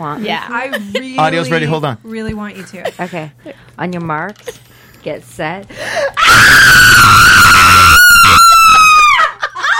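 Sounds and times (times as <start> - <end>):
speech: 0.0 - 7.2
loud sustained horror movie scream: 6.2 - 9.3.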